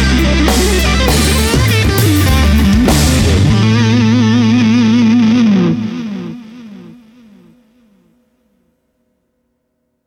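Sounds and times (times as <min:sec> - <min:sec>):
drums: 0:00.0 - 0:06.9.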